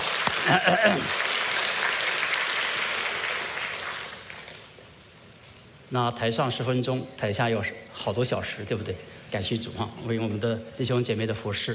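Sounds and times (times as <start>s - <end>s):
applause: 0.0s - 4.8s
speech: 0.5s - 1.3s, 5.9s - 11.7s.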